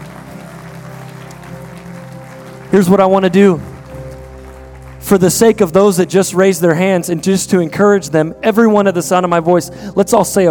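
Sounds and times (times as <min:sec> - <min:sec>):
audience clapping hands: 0:00.0 - 0:07.9
speech: 0:02.7 - 0:03.7, 0:05.0 - 0:10.4.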